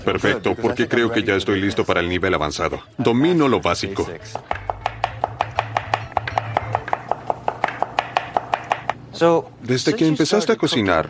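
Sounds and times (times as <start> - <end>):
speech: 0.0 - 4.6, 9.2 - 11.0
knife chopping food into thin slices on a cutting board in a Korean cooking lesson: 4.3 - 9.0.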